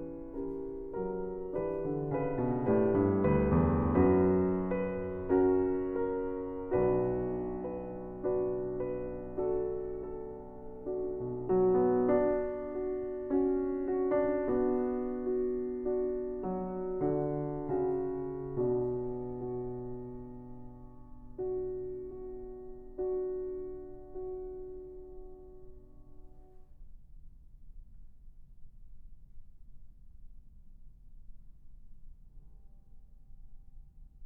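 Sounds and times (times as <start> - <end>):
prelude: 0.0 - 26.5.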